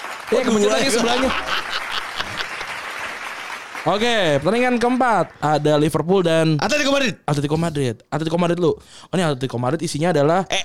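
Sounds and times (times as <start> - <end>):
group applauding: 0.0 - 6.0
speech: 0.3 - 1.8, 3.8 - 10.6
laughter: 0.4 - 2.9.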